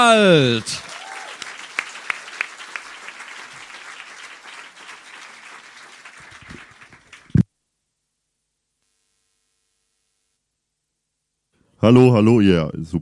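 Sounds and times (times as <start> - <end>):
speech: 0.0 - 0.9, 11.8 - 12.9
audience applause welcoming a comedian in the Ratskeller: 0.0 - 7.4.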